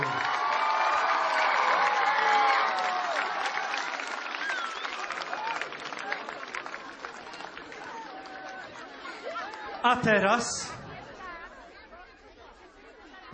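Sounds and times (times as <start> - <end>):
applause: 0.0 - 9.8
speech: 9.8 - 10.8.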